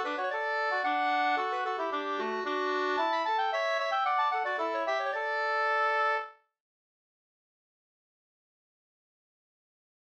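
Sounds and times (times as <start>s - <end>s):
polska folk tune: 0.0s - 6.4s.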